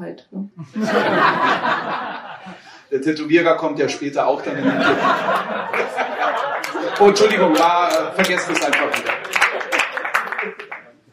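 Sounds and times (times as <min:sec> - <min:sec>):
speech: 0:00.0 - 0:09.2
laughter: 0:00.6 - 0:02.8, 0:04.2 - 0:10.9
sparse applause: 0:05.0 - 0:11.0.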